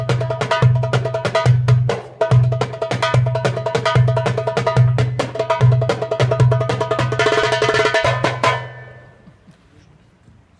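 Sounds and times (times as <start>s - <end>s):
darbuka drumming: 0.0s - 9.4s.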